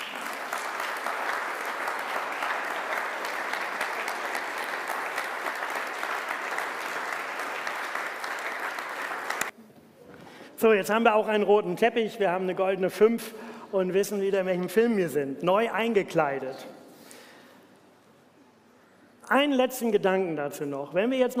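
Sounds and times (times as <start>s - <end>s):
warm applause: 0.0s - 9.6s
speech: 10.6s - 16.8s, 19.3s - 21.3s.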